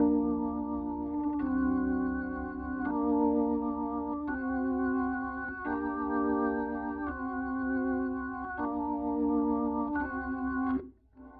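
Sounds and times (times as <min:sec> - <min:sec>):
organ: 0:00.0 - 0:11.3.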